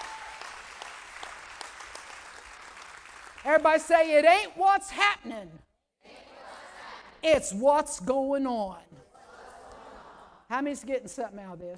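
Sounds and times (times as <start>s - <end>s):
audience clapping: 0.0s - 4.0s
speech: 3.4s - 5.7s, 7.2s - 9.0s, 10.5s - 11.7s.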